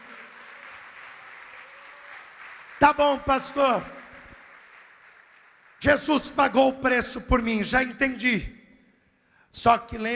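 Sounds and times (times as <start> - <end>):
congregation applauding in a church service: 0.0 - 7.5
speech: 2.8 - 4.0, 5.8 - 8.6, 9.5 - 10.1.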